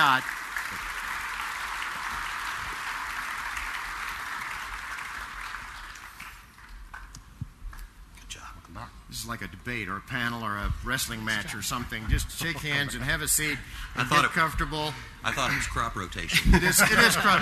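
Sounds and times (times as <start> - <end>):
speech: 0.0 - 0.9, 9.2 - 17.4
audience applause: 0.0 - 7.2
laughter: 11.2 - 17.4.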